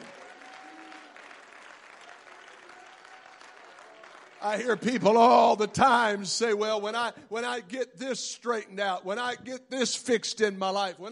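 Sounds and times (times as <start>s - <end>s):
audience clapping hands in praise: 0.0s - 5.4s
speech: 4.4s - 11.1s.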